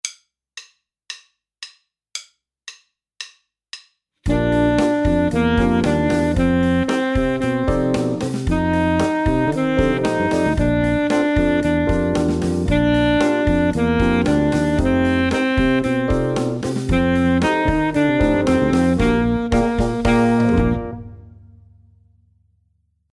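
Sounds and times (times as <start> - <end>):
saxophone: 4.3 - 21.5.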